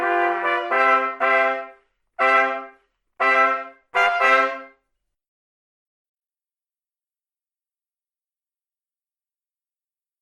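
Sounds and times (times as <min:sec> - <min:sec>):
four muted trumpets playing: 0:00.0 - 0:04.8.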